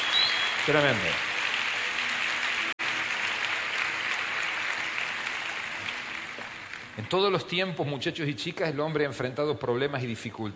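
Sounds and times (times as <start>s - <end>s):
audience applause: 0.0s - 7.5s
speech: 0.7s - 1.3s, 7.0s - 10.5s.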